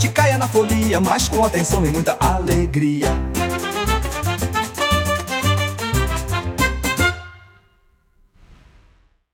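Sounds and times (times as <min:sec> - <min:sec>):
samba music: 0:00.0 - 0:07.3.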